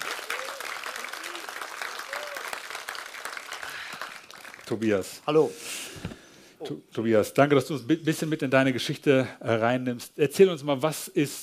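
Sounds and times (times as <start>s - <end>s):
audience applause: 0.0s - 4.9s
speech: 4.7s - 11.4s.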